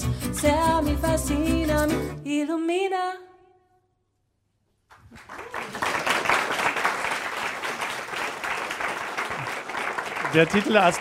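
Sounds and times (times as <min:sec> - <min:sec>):
speech: 0:00.4 - 0:03.3, 0:10.3 - 0:11.0
large crowd applauding: 0:04.9 - 0:11.0.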